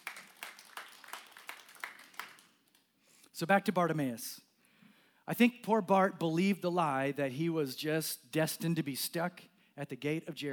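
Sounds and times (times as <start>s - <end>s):
audience clapping: 0.0s - 2.9s
speech: 3.4s - 4.5s, 5.3s - 10.5s.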